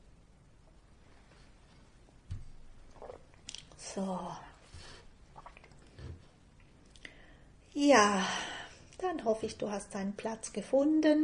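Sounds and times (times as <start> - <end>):
person sipping a drink and swallowing: 2.8 - 3.8, 4.4 - 7.2
speech: 4.0 - 4.5, 7.8 - 11.2.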